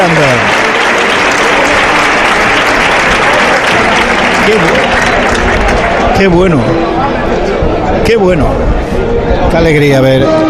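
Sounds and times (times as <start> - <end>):
bullring crowd applauding standing: 0.0 - 7.7
speech: 6.2 - 6.8, 8.0 - 8.9, 9.5 - 10.4.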